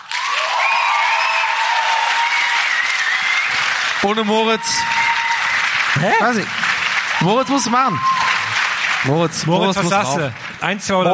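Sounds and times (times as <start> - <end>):
whistles and cheers: 0.0 - 6.0, 7.1 - 9.0
crowd applauding: 0.0 - 11.1
speech: 4.0 - 5.0, 6.0 - 8.2, 9.0 - 11.1.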